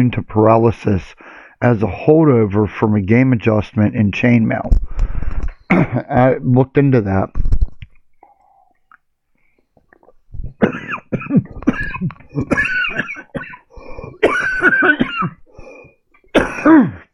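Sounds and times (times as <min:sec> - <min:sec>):
speech: 0:00.0 - 0:07.5, 0:10.6 - 0:10.8, 0:12.0 - 0:12.8, 0:16.6 - 0:17.0
person coughing after something went down the wrong pipe: 0:05.7 - 0:06.1, 0:10.4 - 0:17.1
throat clearing: 0:05.7 - 0:06.1, 0:10.4 - 0:17.1.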